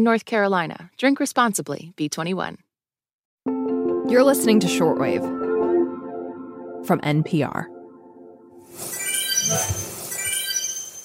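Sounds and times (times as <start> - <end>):
speech: 0.0 - 2.6, 3.4 - 5.4, 6.8 - 7.8, 8.8 - 9.8
video game shooting star wishing chime: 8.9 - 11.0.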